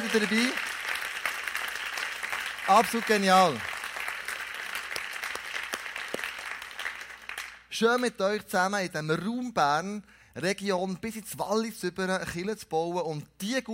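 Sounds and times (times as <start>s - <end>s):
audience applause: 0.0s - 7.6s
speech: 0.1s - 0.7s, 2.7s - 3.7s, 7.8s - 13.7s.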